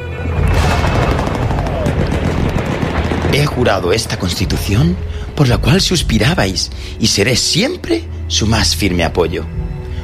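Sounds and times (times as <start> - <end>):
gunfire of enemy weapons: 0.3 - 4.8
speech: 3.4 - 9.8.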